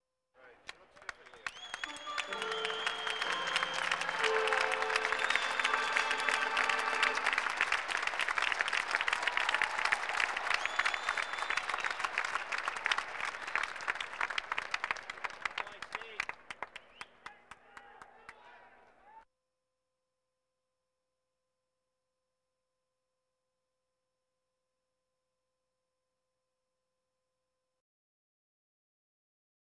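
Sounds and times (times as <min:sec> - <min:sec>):
sports crowd: 0:00.4 - 0:19.2.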